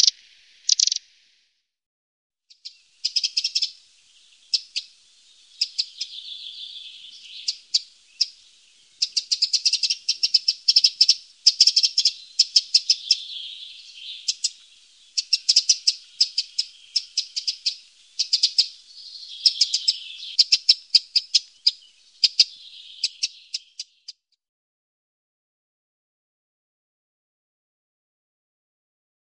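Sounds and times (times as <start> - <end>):
Eurasian wren song: 0.0 - 1.2, 2.4 - 24.3.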